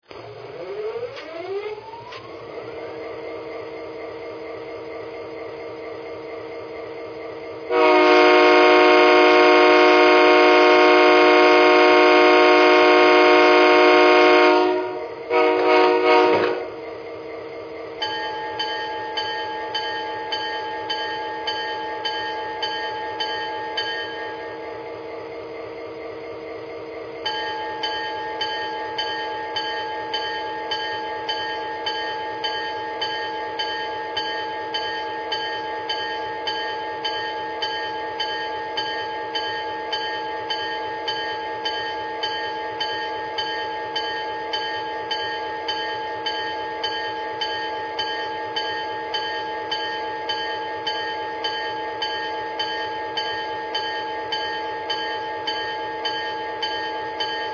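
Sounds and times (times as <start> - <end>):
F40PH diesel locomotive train: 0.0 - 57.5.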